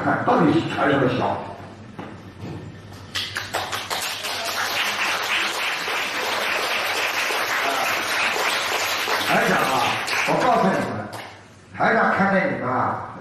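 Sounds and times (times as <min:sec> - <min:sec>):
speech: 0:00.0 - 0:01.6, 0:11.8 - 0:13.1
small audience applause: 0:03.1 - 0:11.0.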